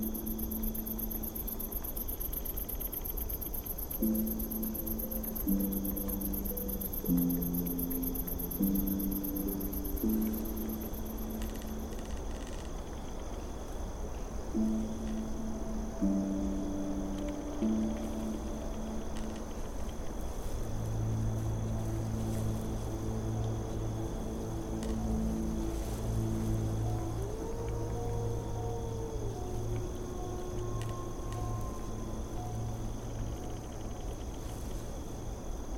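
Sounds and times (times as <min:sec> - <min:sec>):
ambient fantasy music: 0:00.0 - 0:35.7
forest at night: 0:00.0 - 0:35.7.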